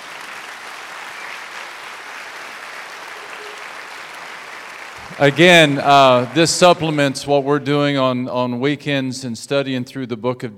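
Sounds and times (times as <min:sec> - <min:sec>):
audience clapping: 0:00.0 - 0:07.4
speech: 0:05.1 - 0:10.5.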